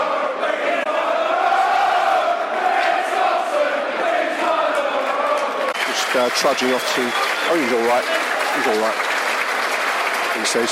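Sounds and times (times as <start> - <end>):
football stadium crowd roaring and chanting: 0.0 - 10.7
speech: 6.2 - 9.1, 10.4 - 10.7.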